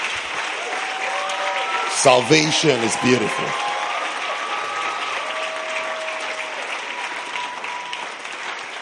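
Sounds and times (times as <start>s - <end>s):
large crowd applauding: 0.0s - 8.7s
speech: 2.0s - 3.7s.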